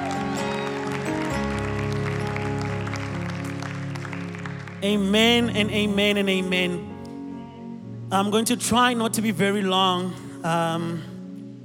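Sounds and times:
audience clapping: 0:00.0 - 0:05.9
organ-like keyboard chords: 0:00.0 - 0:11.6
speech: 0:04.8 - 0:06.9, 0:08.1 - 0:11.1.

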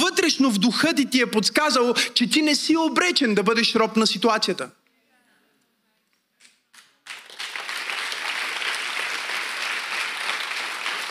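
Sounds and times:
speech: 0:00.3 - 0:04.8
audience applauding: 0:06.7 - 0:11.0.

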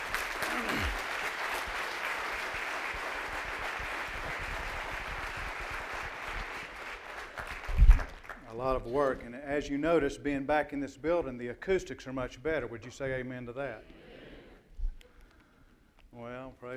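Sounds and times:
audience applause: 0:00.0 - 0:08.4
speech: 0:08.6 - 0:14.0, 0:16.2 - 0:16.7.

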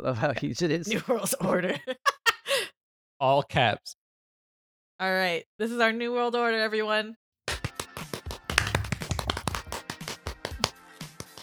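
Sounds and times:
speech: 0:00.0 - 0:02.0, 0:03.2 - 0:04.0, 0:05.0 - 0:07.2
laughter: 0:00.3 - 0:02.6
hand clapping: 0:07.5 - 0:11.4.

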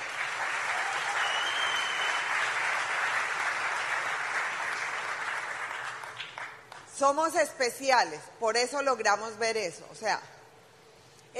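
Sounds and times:
audience applause: 0:00.0 - 0:06.7
speech: 0:07.0 - 0:10.4.

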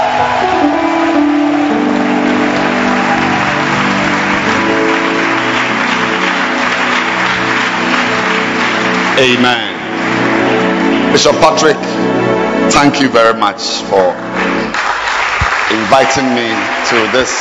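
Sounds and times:
audience hand clapping: 0:00.0 - 0:11.2, 0:14.2 - 0:17.4
speech: 0:09.2 - 0:09.7, 0:11.1 - 0:14.6, 0:15.7 - 0:17.4.

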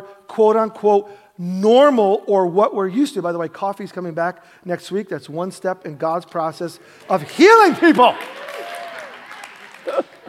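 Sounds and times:
speech: 0:00.4 - 0:08.6
audience clapping: 0:06.9 - 0:10.2.

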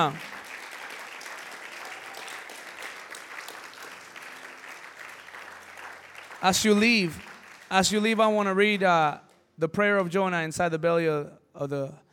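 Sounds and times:
speech: 0:00.0 - 0:00.3, 0:06.4 - 0:12.0
crowd applause: 0:00.0 - 0:08.2.

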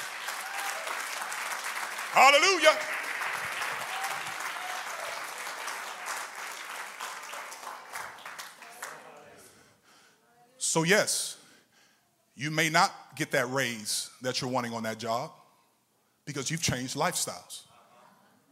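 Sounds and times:
audience clapping hands: 0:00.0 - 0:09.3
speech: 0:02.2 - 0:03.0, 0:10.8 - 0:11.4, 0:12.4 - 0:15.4, 0:16.3 - 0:17.7.

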